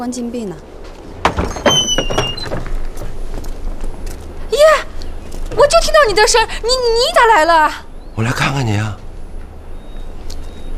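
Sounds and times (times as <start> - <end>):
speech: 0.0 - 0.8, 5.6 - 9.0
quiet shuffling: 0.8 - 6.0
detention room door squealing creaks: 1.0 - 3.2
dull knocking thumps of a locked detention room door: 1.1 - 3.4.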